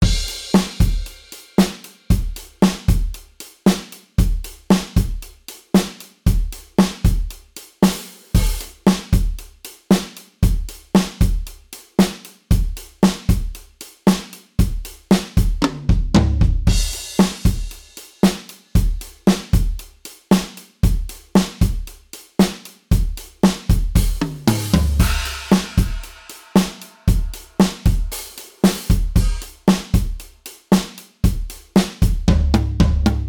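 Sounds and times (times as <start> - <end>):
drums: 0.0 - 33.2
modal surf music: 24.4 - 27.0, 29.2 - 29.6.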